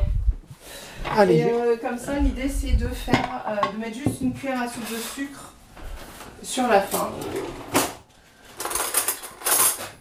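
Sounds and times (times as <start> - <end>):
speech: 1.2 - 5.6, 6.4 - 7.8
metal knife and fork clinking as laid on a table with a green tablecloth: 8.6 - 9.9.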